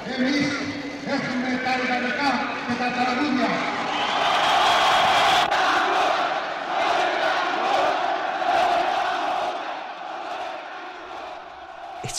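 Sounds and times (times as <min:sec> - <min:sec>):
huge crowd cheering in a square: 0:01.3 - 0:12.1.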